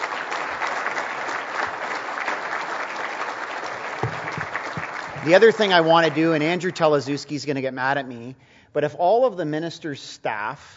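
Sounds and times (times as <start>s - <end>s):
round of applause: 0.0s - 7.2s
speech: 5.2s - 10.7s.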